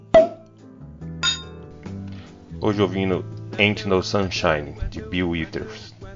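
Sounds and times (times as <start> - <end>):
wine glasses clinking in a toast: 0.2 - 0.4, 1.2 - 1.6
speech: 2.6 - 6.0.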